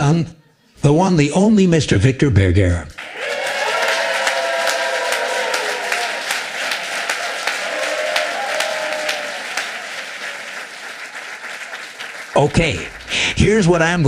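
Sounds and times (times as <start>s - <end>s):
speech: 0.0s - 3.0s, 12.4s - 14.0s
crowd applauding: 3.0s - 14.0s
people cheering: 3.0s - 14.0s.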